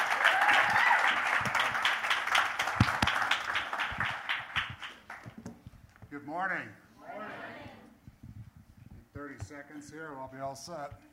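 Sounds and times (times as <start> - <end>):
audience applause welcoming a speaker: 0.0 - 5.3
speech: 6.4 - 6.8, 9.3 - 11.1.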